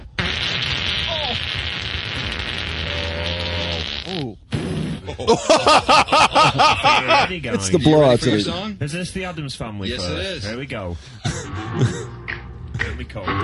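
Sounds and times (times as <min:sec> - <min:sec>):
fart: 0:00.0 - 0:05.2
laughter: 0:05.0 - 0:07.5, 0:11.2 - 0:13.1
speech: 0:05.2 - 0:12.1, 0:13.0 - 0:13.4.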